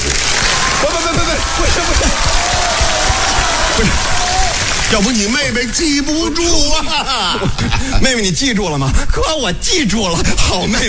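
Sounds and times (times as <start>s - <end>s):
audience applause: 0.0s - 6.4s
scattered voices and shouts: 0.3s - 6.0s
laughter: 0.6s - 8.4s
speech: 3.8s - 4.1s, 4.9s - 10.8s.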